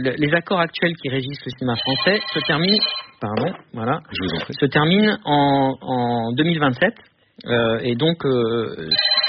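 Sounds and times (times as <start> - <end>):
speech: 0.0 - 9.2
telephone ringing in a hotel room: 1.7 - 3.2, 8.9 - 9.2.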